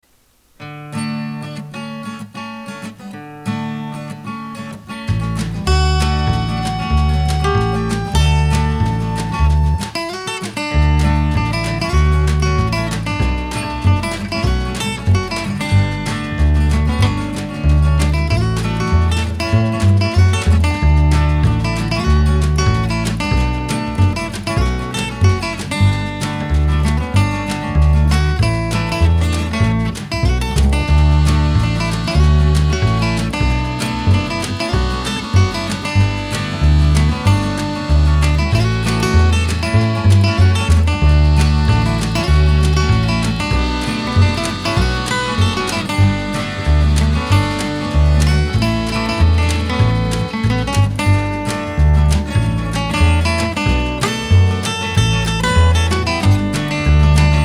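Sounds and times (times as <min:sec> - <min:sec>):
acoustic music: 0:00.0 - 0:57.4.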